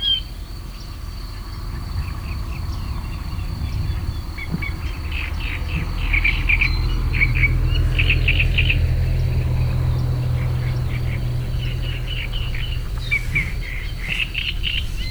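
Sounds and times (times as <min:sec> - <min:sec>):
car passing on a dam: 0:00.1 - 0:15.0
chattering reed warbler in nature: 0:00.1 - 0:15.0
cuckoo calling in nature: 0:03.5 - 0:15.0.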